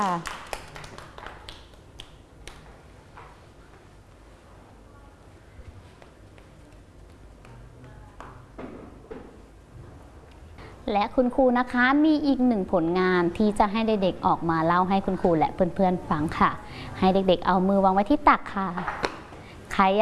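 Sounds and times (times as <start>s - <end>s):
speech: 0.0s - 0.4s, 10.9s - 19.0s, 19.8s - 19.9s
children clapping hands: 0.0s - 2.7s.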